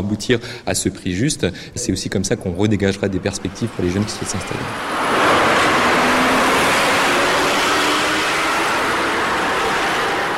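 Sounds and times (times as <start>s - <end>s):
speech: 0.0s - 5.2s
big tractor driving up: 2.6s - 10.3s.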